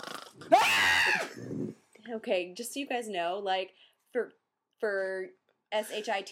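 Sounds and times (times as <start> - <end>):
fake snoring: 0.0 - 0.5, 1.2 - 1.8
speech: 2.1 - 6.3
breathing: 3.7 - 4.1.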